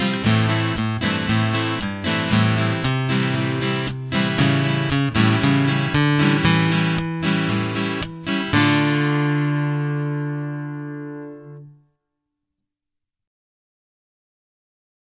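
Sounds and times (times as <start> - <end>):
acoustic guitar accompaniment: 0.0 - 11.8.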